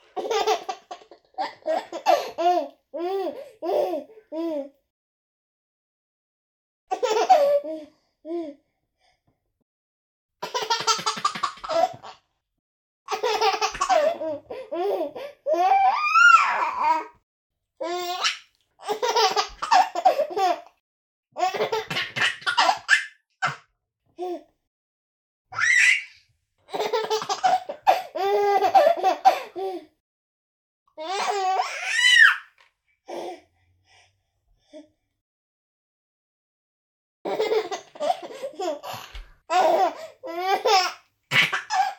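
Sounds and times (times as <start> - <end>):
baby around six months old laughing: 0.2 - 4.1, 6.9 - 7.6, 10.4 - 12.2, 13.1 - 17.1, 17.8 - 20.7, 21.4 - 23.6, 26.7 - 29.6, 31.0 - 32.4, 37.3 - 41.9.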